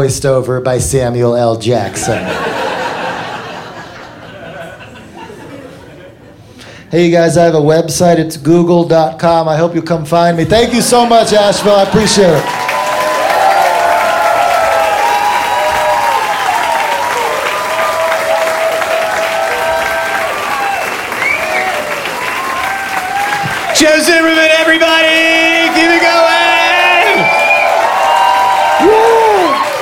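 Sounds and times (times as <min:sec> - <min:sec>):
speech: 0:00.0 - 0:02.7, 0:06.9 - 0:12.7
laughter: 0:01.9 - 0:06.6, 0:10.6 - 0:12.5
audience clapping: 0:11.4 - 0:29.8.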